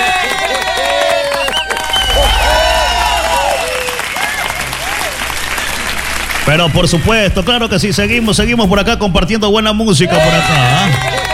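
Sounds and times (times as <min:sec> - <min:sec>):
audience applause: 0:00.0 - 0:07.6, 0:10.2 - 0:11.3
speech: 0:06.5 - 0:11.3.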